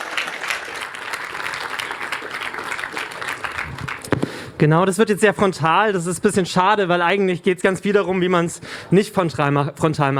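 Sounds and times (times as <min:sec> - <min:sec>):
audience applause: 0:00.0 - 0:04.3
speech: 0:04.6 - 0:10.1.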